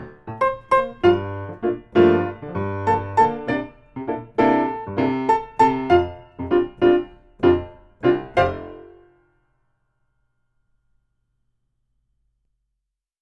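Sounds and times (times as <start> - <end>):
comical solo piano theme: 0.0 - 9.1.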